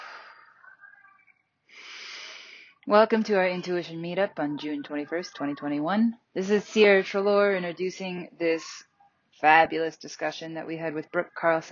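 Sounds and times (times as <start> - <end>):
breathing: 1.7 - 2.8
speech: 2.9 - 11.7.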